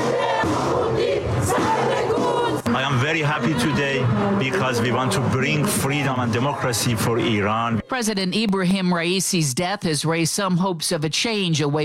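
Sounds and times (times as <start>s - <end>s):
crowd shouting outside the Iranian embassy in Berlin: 0.0s - 8.0s
speech: 2.8s - 11.8s.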